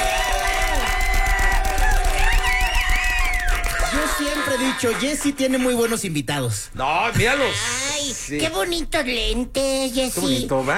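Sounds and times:
whoops and shrill, wavering yells: 0.0 - 5.0
crowd cheering and clapping: 0.0 - 6.0
speech: 4.8 - 10.7.

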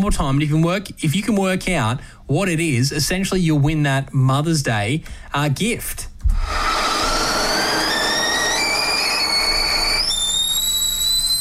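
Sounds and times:
speech: 0.0 - 6.6
kettle whistling: 6.4 - 11.3.

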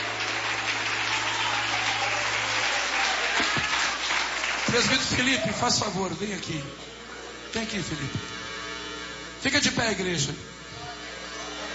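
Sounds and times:
audience clapping hands: 0.0 - 5.7
speech: 4.8 - 8.4, 9.4 - 10.5.

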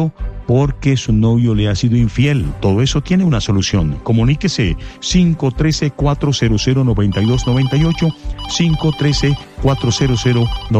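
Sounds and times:
speech: 0.0 - 10.7
telephone ringing with an incoming call, electronic melodic ringtone: 7.1 - 10.7.

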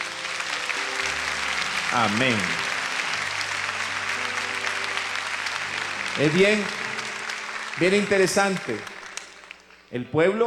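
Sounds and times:
audience applauding: 0.0 - 9.9
speech: 1.9 - 2.6, 6.2 - 6.8, 7.8 - 8.9, 9.9 - 10.4.

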